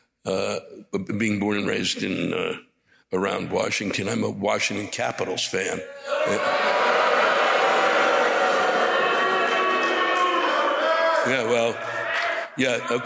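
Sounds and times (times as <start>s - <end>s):
speech: 0.2s - 6.9s, 11.3s - 12.0s, 12.6s - 13.0s
big hockey crowd booing: 5.8s - 13.0s.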